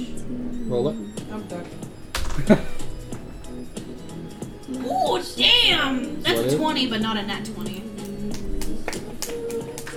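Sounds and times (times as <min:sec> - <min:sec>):
low faint hum: 0:00.0 - 0:09.9
speech: 0:00.7 - 0:02.9, 0:04.8 - 0:07.8
hands clapping: 0:07.6 - 0:09.9.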